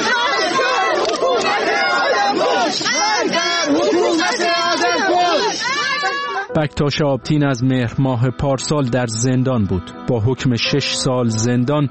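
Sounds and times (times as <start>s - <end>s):
crowd shouting slogans: 0.0s - 6.5s
speech: 6.6s - 11.8s.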